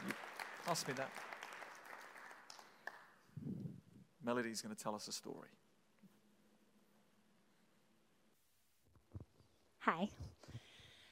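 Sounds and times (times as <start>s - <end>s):
audience clapping: 0.0s - 3.3s
speech: 0.7s - 1.3s, 4.2s - 5.6s, 9.8s - 10.6s.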